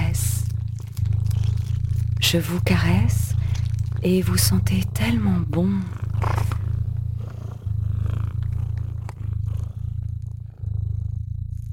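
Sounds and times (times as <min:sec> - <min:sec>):
cat purring softly: 0:00.0 - 0:11.7
speech: 0:02.3 - 0:03.3, 0:04.0 - 0:06.0.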